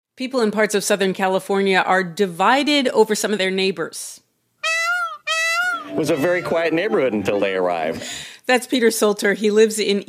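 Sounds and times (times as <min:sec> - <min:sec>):
speech: 0:00.2 - 0:04.2, 0:05.9 - 0:10.0
Indian peafowl calls: 0:04.6 - 0:07.2.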